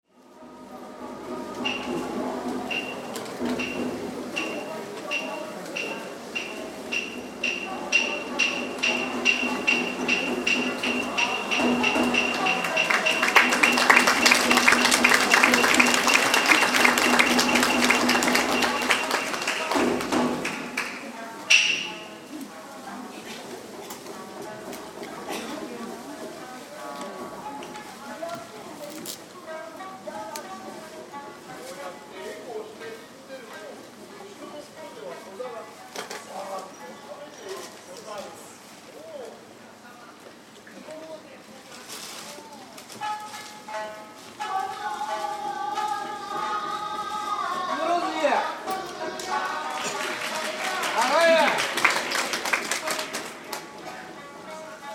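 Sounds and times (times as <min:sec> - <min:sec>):
street musician playing music in Tokyo Japan: 0:00.2 - 0:34.8, 0:42.8 - 0:54.9
applause in Tokyo Japan: 0:11.7 - 0:21.1, 0:49.2 - 0:53.7.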